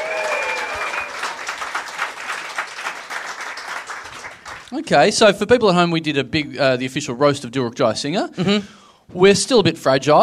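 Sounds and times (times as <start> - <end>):
crowd clapping: 0.0 - 4.7
speech: 4.7 - 10.2.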